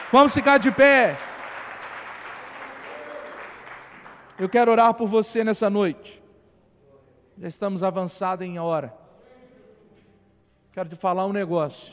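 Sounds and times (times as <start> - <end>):
audience applause: 0.0 - 4.6
speech: 0.1 - 1.3, 4.4 - 6.2, 7.4 - 9.0, 10.8 - 11.9.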